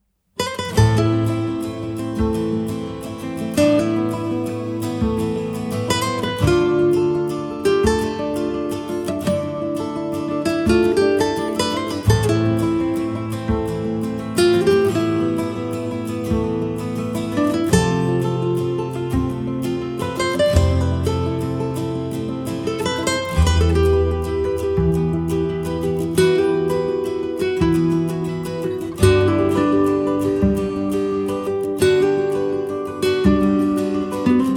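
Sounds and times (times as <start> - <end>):
music piece: 0.4 - 34.5.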